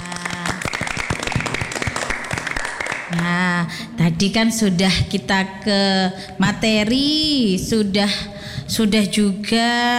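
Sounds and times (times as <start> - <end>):
group hand clapping: 0.0 - 3.4
speech: 3.1 - 9.9.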